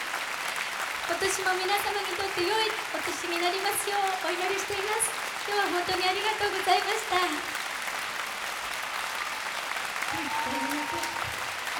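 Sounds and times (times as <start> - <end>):
audience applause: 0.0 - 11.7
speech: 1.1 - 7.6, 10.2 - 11.4.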